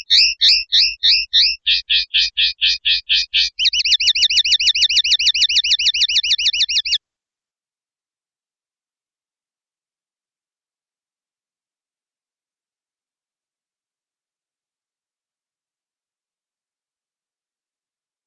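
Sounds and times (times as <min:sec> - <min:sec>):
common linnet giving twittering double chirps: 0:00.0 - 0:07.0.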